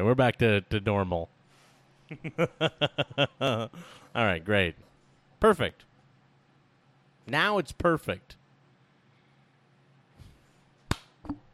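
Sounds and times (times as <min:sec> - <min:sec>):
speech: 0:00.0 - 0:01.4, 0:02.1 - 0:05.9, 0:07.3 - 0:08.4
laughter: 0:02.1 - 0:03.9
hand clapping: 0:10.9 - 0:11.5.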